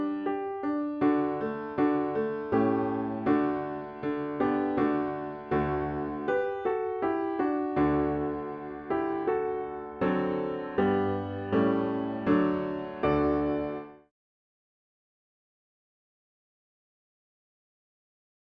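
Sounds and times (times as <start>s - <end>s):
piano: 0.0s - 14.1s.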